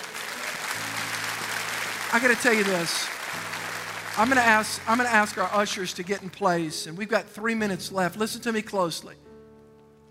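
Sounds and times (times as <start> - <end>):
audience applause: 0.0 - 6.3
speech: 2.1 - 3.2, 4.2 - 9.3.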